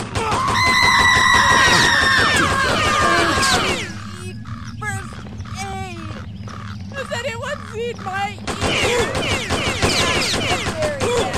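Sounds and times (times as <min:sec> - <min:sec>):
gunfire in the 1997 video game Postal: 0:00.0 - 0:04.0, 0:08.4 - 0:11.3
screams in the 1997 video game Postal: 0:00.0 - 0:04.2.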